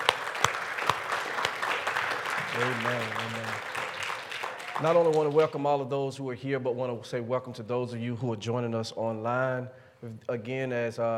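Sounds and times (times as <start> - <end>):
church congregation clapping hands in praise at a Sunday morning service: 0.0 - 5.7
speech: 2.6 - 3.7, 4.8 - 11.1.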